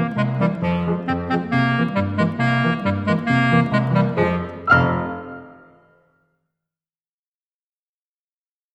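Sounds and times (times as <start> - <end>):
clarinet: 0.0 - 6.0
piano: 0.0 - 6.2.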